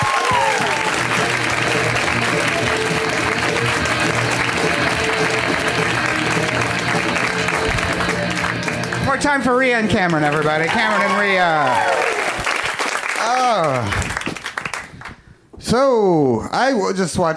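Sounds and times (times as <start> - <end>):
audience applause for a comedian at a comedy show: 0.0 - 15.1
speech: 9.3 - 12.1, 15.7 - 17.3.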